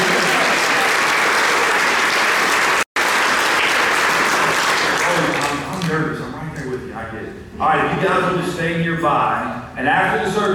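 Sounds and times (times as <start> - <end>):
congregation applause during a Sunday church service: 0.0 - 6.1
speech: 8.2 - 10.5.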